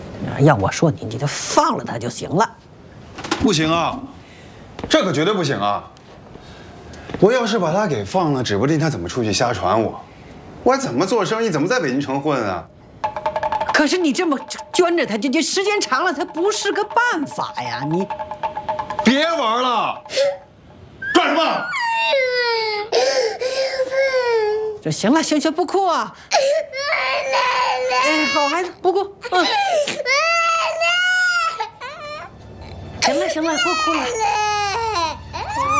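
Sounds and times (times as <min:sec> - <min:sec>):
speech: 0:00.4 - 0:02.7, 0:03.4 - 0:04.2, 0:04.8 - 0:05.9, 0:07.2 - 0:12.8, 0:13.8 - 0:18.3, 0:19.1 - 0:20.4, 0:21.2 - 0:22.4, 0:24.8 - 0:30.2, 0:33.1 - 0:34.5
child crying loudly in wailing bursts: 0:21.0 - 0:24.8, 0:26.3 - 0:35.7.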